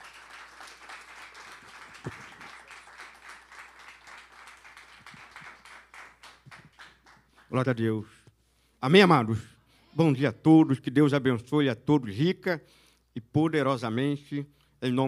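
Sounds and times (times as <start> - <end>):
audience applauding: 0.0 - 7.6
speech: 7.5 - 8.2, 8.8 - 15.0.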